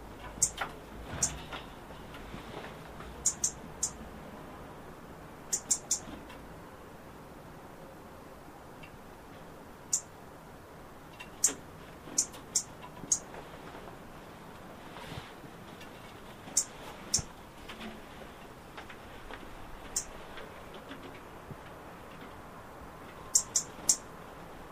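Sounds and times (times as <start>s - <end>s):
background hiss: 0.0s - 24.7s
European robin ticking: 0.3s - 0.6s, 3.2s - 4.0s, 5.5s - 6.1s, 9.9s - 10.1s, 11.2s - 11.6s, 12.2s - 13.3s, 16.5s - 17.3s, 19.9s - 20.2s, 23.3s - 24.1s.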